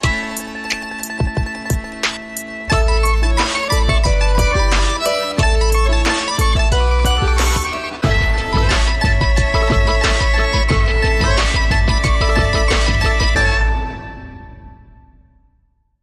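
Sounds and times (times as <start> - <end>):
mandolin groove: 0.0 - 14.7.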